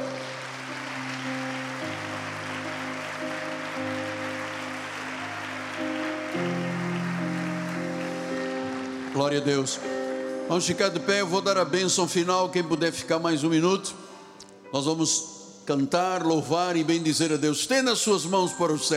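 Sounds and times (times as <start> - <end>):
audience applause: 0.0 - 10.3
sustained keyboard chords: 0.0 - 18.9
speech: 9.2 - 14.0, 14.7 - 18.9.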